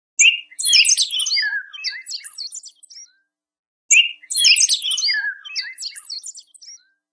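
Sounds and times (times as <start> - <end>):
HTC bird sound: 0.2 - 3.3, 3.9 - 7.0.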